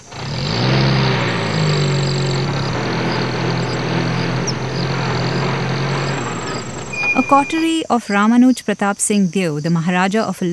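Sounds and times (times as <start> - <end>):
motor vehicle engine rumbling: 0.0 - 8.1
speech: 7.3 - 10.5.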